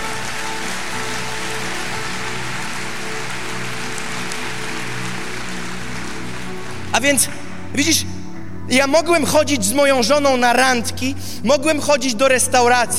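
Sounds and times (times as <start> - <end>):
audience applause: 0.0 - 7.5
speech: 7.0 - 12.9.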